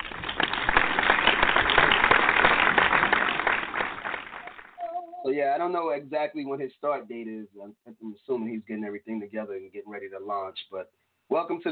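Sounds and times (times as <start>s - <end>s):
crowd applause: 0.0s - 5.0s
speech: 5.4s - 11.7s.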